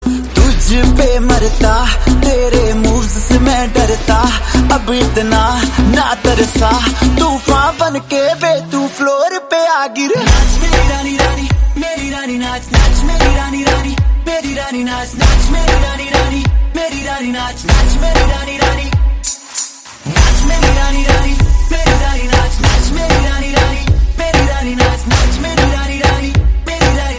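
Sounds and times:
Bollywood song ringtone: 0.1 - 27.1.

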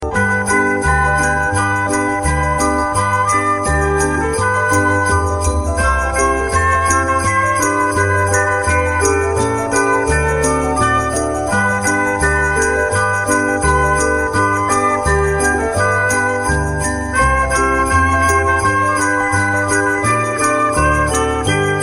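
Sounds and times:
Christmas song ringtone: 0.0 - 21.8.

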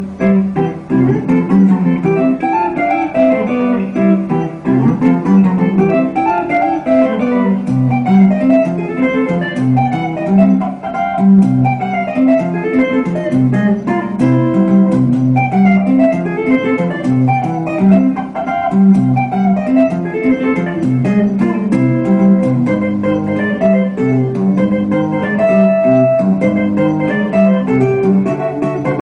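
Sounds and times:
guitar ringtone: 0.0 - 29.0.

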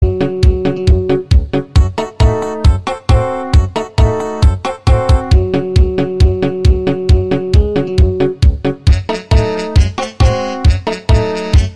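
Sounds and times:
light music ringtone: 0.0 - 11.7.

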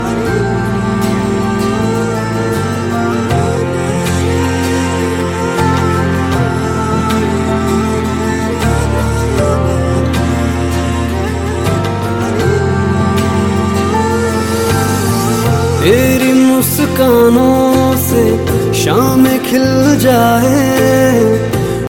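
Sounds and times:
Hindi Bollywood music ringtone: 0.0 - 21.8.

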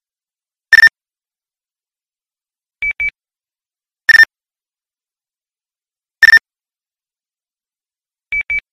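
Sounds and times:
alert beep ringtone: 6.2 - 6.4.

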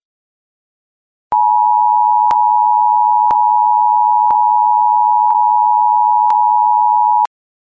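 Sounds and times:
emergency ringtone: 1.4 - 7.3.

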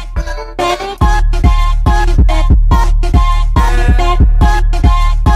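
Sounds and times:
hip hop ringtone: 0.2 - 5.2.

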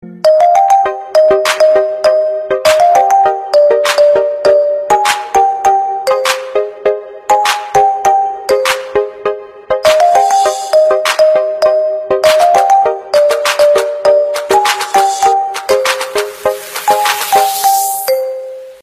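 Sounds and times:
instrumental ringtone: 0.0 - 18.8.

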